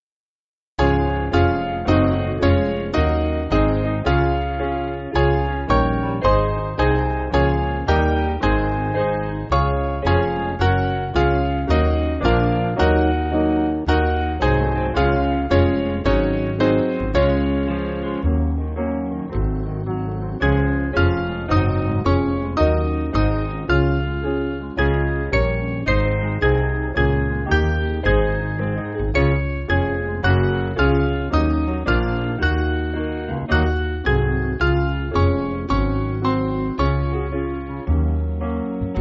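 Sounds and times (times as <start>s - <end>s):
piano backing music for churches: 0.8s - 39.0s.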